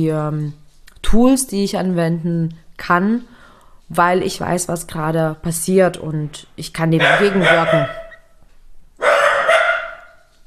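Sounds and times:
speech: 0.0 - 8.0
dachshund barking at a noise in the stairwell: 7.0 - 8.3, 9.0 - 10.3.

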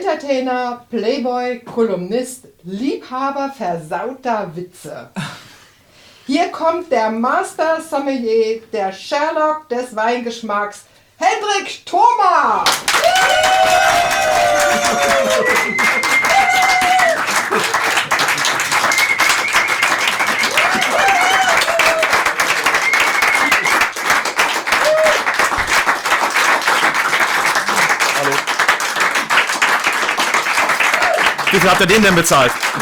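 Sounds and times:
speech: 0.0 - 5.4, 6.3 - 17.0, 31.6 - 32.7
audience clapping: 12.6 - 32.7
cheering and whoops: 12.7 - 19.2, 20.0 - 23.8, 24.7 - 25.5, 30.8 - 31.5.

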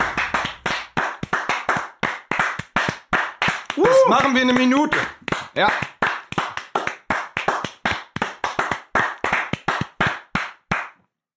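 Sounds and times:
hand clapping: 0.0 - 11.0
speech: 4.1 - 5.9.

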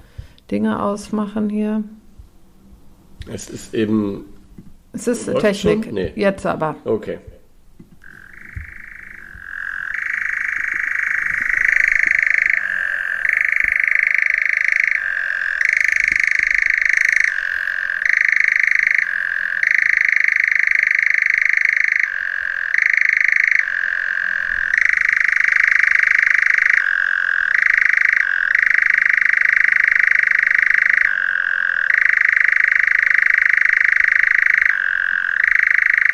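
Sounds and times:
speech: 0.5 - 2.0, 3.2 - 7.3
European nightjar churring song: 8.0 - 36.1.

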